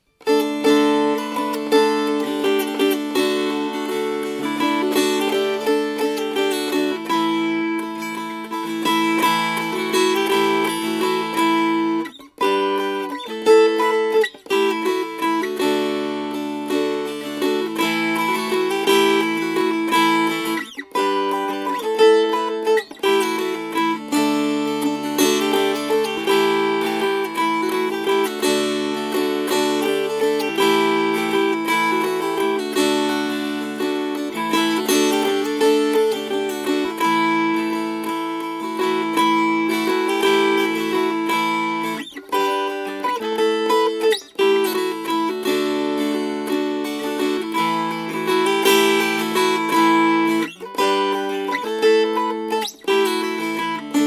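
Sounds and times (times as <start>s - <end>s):
strummed strings: 0.0s - 54.0s.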